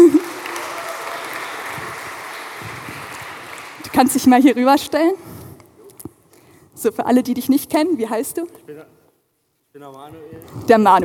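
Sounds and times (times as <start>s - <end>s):
audience applause: 0.0s - 4.4s
speech: 4.0s - 5.3s, 6.8s - 9.0s, 9.8s - 11.0s.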